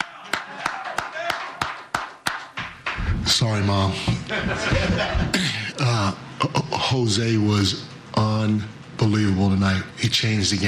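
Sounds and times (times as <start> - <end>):
person clapping: 0.0 - 3.1
speech: 3.3 - 10.6
laughter: 4.0 - 6.7.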